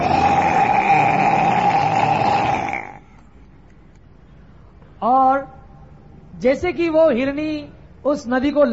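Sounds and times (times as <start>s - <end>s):
lion roaring: 0.0s - 3.0s
speech: 6.4s - 8.7s.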